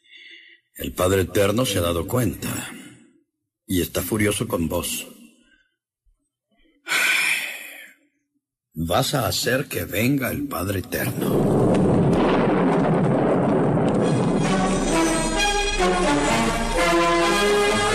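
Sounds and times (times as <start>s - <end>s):
speech: 0.8s - 2.8s, 3.7s - 5.2s, 8.8s - 12.0s
loud thunderclaps: 11.1s - 17.8s.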